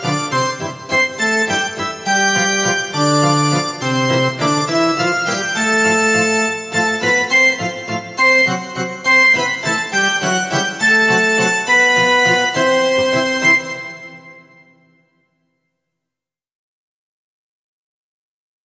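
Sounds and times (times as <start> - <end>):
song: 0.0 - 14.8.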